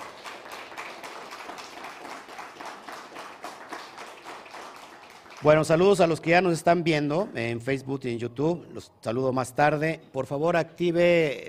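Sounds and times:
audience applause: 0:00.0 - 0:05.8
speech: 0:05.4 - 0:11.4.

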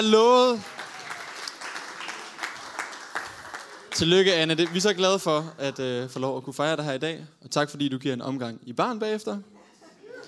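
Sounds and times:
speech: 0:00.0 - 0:00.7, 0:04.0 - 0:09.5
audience applause for a woman's birthday: 0:00.0 - 0:05.0.

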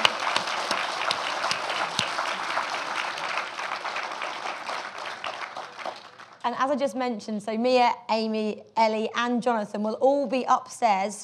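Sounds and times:
audience round of applause: 0:00.0 - 0:06.4
speech: 0:06.5 - 0:11.2.

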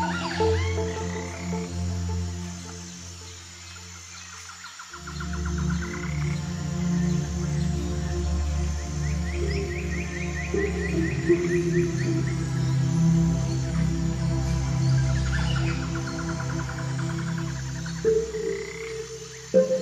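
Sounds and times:
low croaking drone in a morning forest: 0:00.0 - 0:04.1, 0:05.0 - 0:19.8
quick bright chirping runs: 0:18.0 - 0:19.8.

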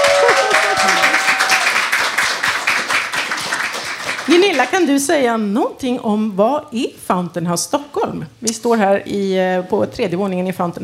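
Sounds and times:
applause: 0:00.0 - 0:04.9
speech: 0:04.6 - 0:10.8.

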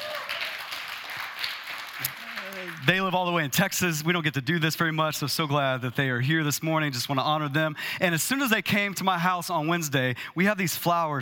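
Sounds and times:
audience clapping: 0:00.0 - 0:03.4
speech: 0:02.8 - 0:11.2.

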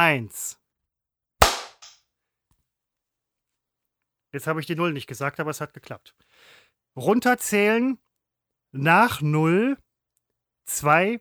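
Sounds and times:
speech: 0:00.0 - 0:00.6, 0:04.4 - 0:08.0, 0:08.7 - 0:09.8, 0:10.7 - 0:11.2
hand clap for audio sync: 0:01.4 - 0:02.0.

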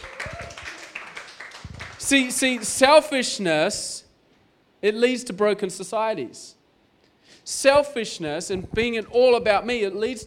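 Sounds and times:
audience clapping: 0:00.0 - 0:02.8
speech: 0:02.1 - 0:04.0, 0:04.8 - 0:06.6, 0:07.5 - 0:10.2.

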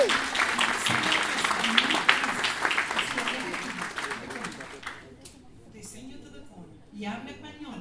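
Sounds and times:
audience applause: 0:00.0 - 0:05.0.

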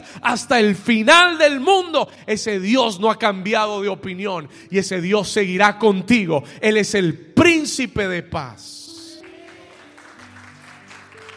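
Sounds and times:
speech: 0:00.1 - 0:08.8
audience applause: 0:09.0 - 0:11.3.

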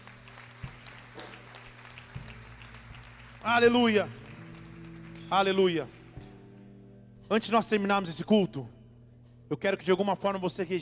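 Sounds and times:
church audience applauding: 0:00.0 - 0:06.1
speech: 0:03.4 - 0:04.2, 0:05.3 - 0:06.0, 0:07.3 - 0:08.8, 0:09.5 - 0:10.8.

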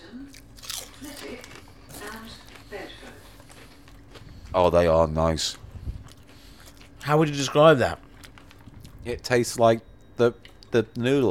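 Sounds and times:
eating spicy crinkle-cut chips: 0:00.3 - 0:05.0, 0:06.0 - 0:07.1, 0:08.0 - 0:09.0
speech: 0:04.6 - 0:05.6, 0:07.1 - 0:08.0, 0:09.0 - 0:11.2.

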